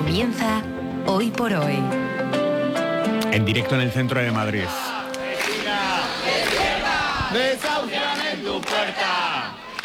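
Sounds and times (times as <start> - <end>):
speech: 0.2 - 2.2, 3.3 - 4.9
protesters chanting at an eviction: 4.5 - 9.8.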